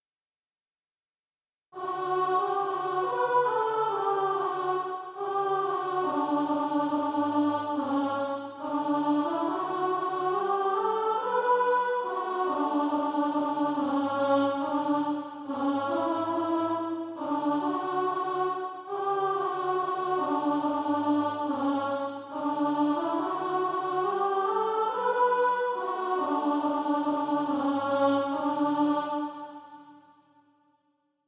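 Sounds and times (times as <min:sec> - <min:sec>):
alto voice singing SATB practice music: 0:01.8 - 0:30.1.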